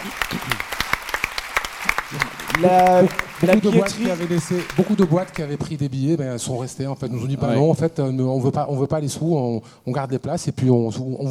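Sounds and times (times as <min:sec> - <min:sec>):
audience applause: 0:00.0 - 0:05.7
speech: 0:02.6 - 0:11.2.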